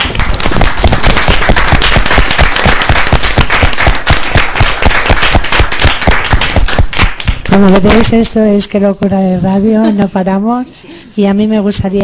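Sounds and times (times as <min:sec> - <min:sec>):
audience applause: 0:00.0 - 0:07.6
speech: 0:07.6 - 0:12.0.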